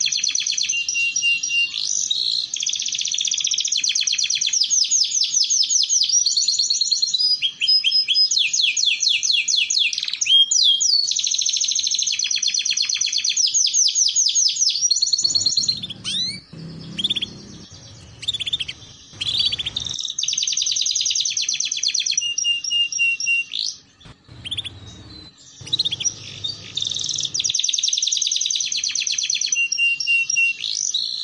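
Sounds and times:
canary song: 0:00.0 - 0:31.2
low hum: 0:15.2 - 0:20.0, 0:24.0 - 0:27.5.

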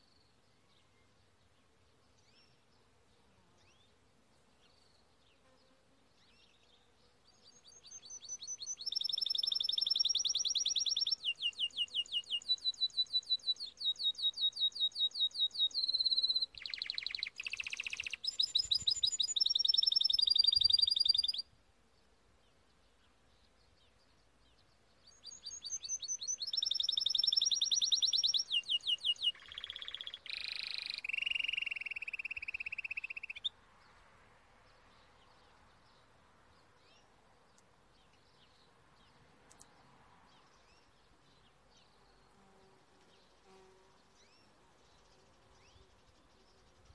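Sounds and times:
Timbrado canary singing: 0:07.5 - 0:21.4, 0:25.0 - 0:33.5.

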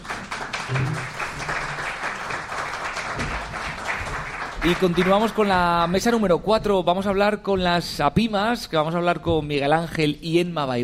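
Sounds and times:
audience applause at an associations event: 0:00.0 - 0:05.9
speech: 0:04.6 - 0:10.8.

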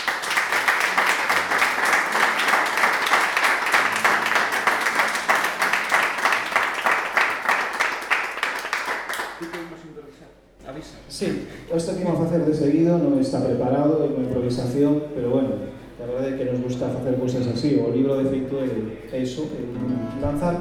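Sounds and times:
crowd clapping: 0:00.0 - 0:09.8
speech: 0:11.2 - 0:20.5.

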